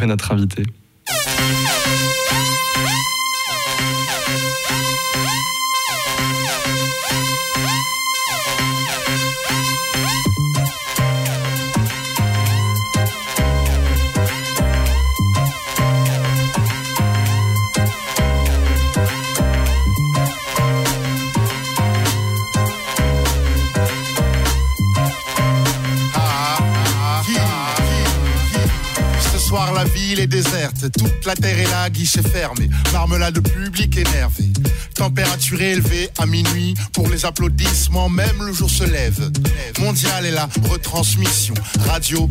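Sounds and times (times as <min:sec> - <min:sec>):
speech: 0:00.0 - 0:07.7, 0:29.8 - 0:42.2
sustained brassy chords: 0:01.1 - 0:30.6
hip-hop track: 0:01.1 - 0:42.2
heavy punchy bass kicks: 0:10.2 - 0:34.8, 0:37.0 - 0:39.7.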